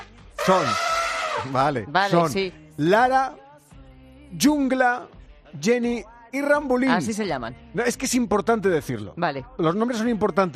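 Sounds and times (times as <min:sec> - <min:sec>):
elephant trumpeting: 0:00.0 - 0:01.7
speech: 0:00.5 - 0:03.4, 0:04.3 - 0:10.5.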